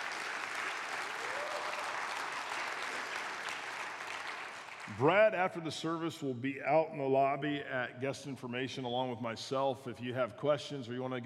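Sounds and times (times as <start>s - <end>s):
crowd applauding: 0.0s - 5.3s
speech: 4.9s - 11.2s.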